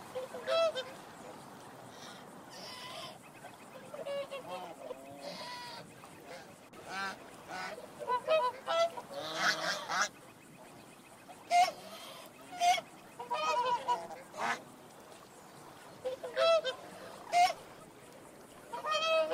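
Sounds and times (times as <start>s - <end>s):
swan honking: 0.0s - 1.3s, 1.9s - 10.2s, 11.3s - 14.7s, 15.7s - 17.8s, 18.6s - 19.3s.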